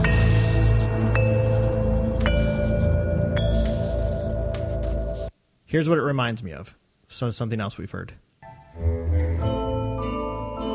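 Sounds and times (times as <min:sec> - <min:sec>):
chime-like trailer music: 0:00.0 - 0:05.3, 0:09.4 - 0:10.7
speech: 0:05.7 - 0:08.2, 0:08.8 - 0:09.0.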